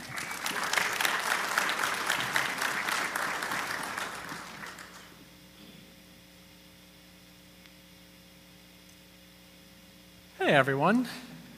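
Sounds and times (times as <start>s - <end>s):
church congregation applauding to welcome a guest speaker: 0.0s - 5.2s
speech: 10.5s - 11.3s.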